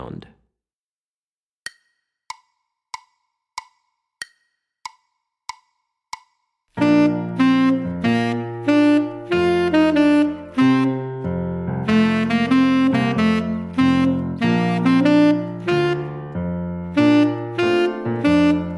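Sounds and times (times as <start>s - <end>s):
tenor saxophone etude: 6.8s - 16.3s, 16.9s - 18.7s.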